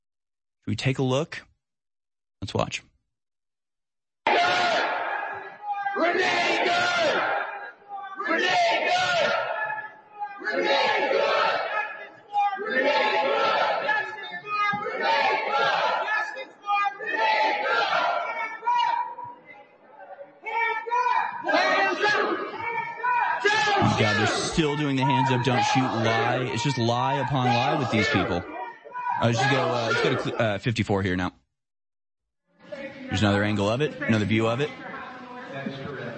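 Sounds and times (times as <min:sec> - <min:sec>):
speech: 0:00.7 - 0:01.5, 0:02.4 - 0:02.9, 0:06.0 - 0:06.5, 0:23.8 - 0:28.6, 0:29.2 - 0:31.4, 0:33.1 - 0:34.9
crowd of protesters shouting a chant inside a church: 0:04.2 - 0:30.4.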